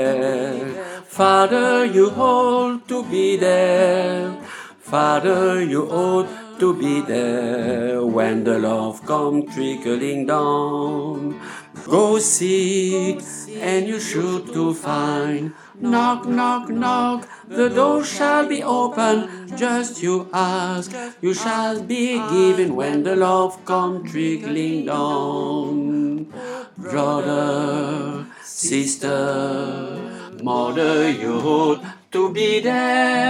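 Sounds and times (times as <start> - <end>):
alto voice singing: 0.0 - 33.2.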